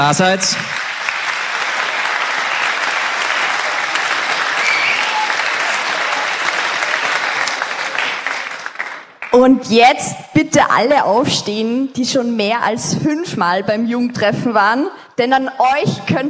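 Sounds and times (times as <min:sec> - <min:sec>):
speech: 0:00.0 - 0:00.8, 0:09.4 - 0:16.2
audience applause: 0:00.0 - 0:09.4.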